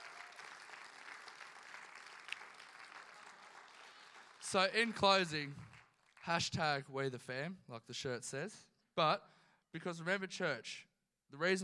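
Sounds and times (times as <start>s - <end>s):
faint audience applause: 0.0s - 6.6s
speech: 4.5s - 5.7s, 6.3s - 11.6s.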